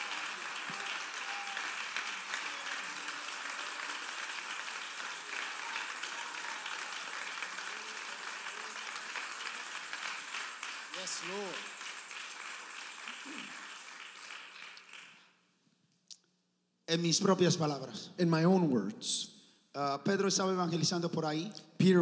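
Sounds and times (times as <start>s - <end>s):
church congregation applause praising the Lord: 0.0s - 15.4s
speech: 11.1s - 11.7s, 16.9s - 21.9s.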